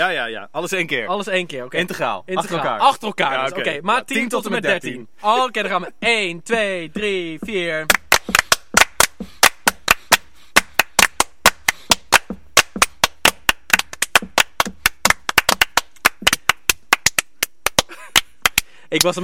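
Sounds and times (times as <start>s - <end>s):
speech: 0.0s - 8.4s, 18.9s - 19.2s
three people clapping a rhythmic piece: 7.4s - 19.2s.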